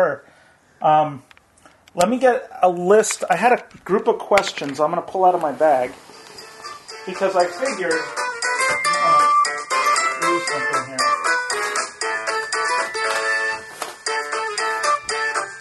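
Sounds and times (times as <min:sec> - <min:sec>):
speech: 0:00.0 - 0:01.3, 0:02.0 - 0:06.1, 0:07.1 - 0:08.2, 0:10.4 - 0:11.1
mobile phone ringing: 0:06.2 - 0:15.6.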